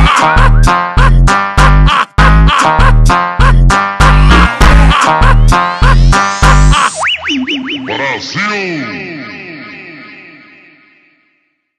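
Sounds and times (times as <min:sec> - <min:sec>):
slowed meme funk music: 0:00.0 - 0:08.4.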